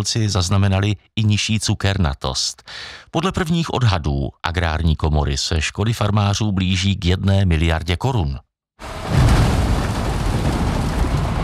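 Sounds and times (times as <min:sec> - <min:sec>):
speech: 0:00.0 - 0:09.2
loader dumping sugar beets onto conveyor outside the Litovel sugar factory: 0:08.8 - 0:11.4.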